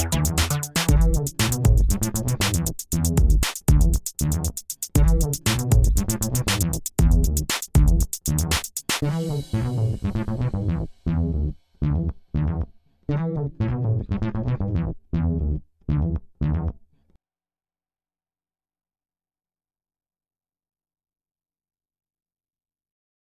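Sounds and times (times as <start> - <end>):
cool computer geek music: 0.0 - 15.4.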